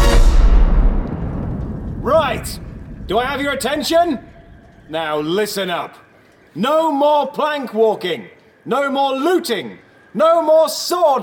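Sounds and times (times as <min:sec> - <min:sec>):
cannon firing: 0:00.0 - 0:05.3
speech: 0:02.4 - 0:04.3, 0:04.9 - 0:06.0, 0:06.6 - 0:11.2.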